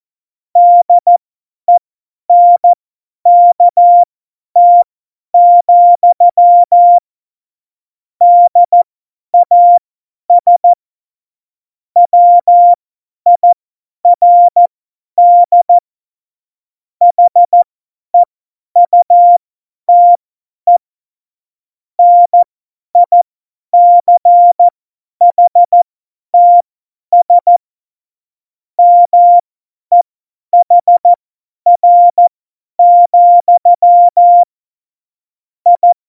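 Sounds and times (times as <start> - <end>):
morse code beeps at tempo 70: 0.6 - 1.2, 2.3 - 7.0, 8.2 - 8.8, 9.4 - 9.8, 10.4 - 10.8, 12.0 - 13.6, 14.2 - 14.6, 15.2 - 15.8, 17.1 - 17.6, 18.2 - 20.8, 22.0 - 22.4, 23.0 - 23.2, 23.8 - 24.7, 25.3 - 25.8, 26.4 - 26.6, 27.2 - 27.6, 28.8 - 30.0, 30.6 - 34.5, 35.7 - 36.0.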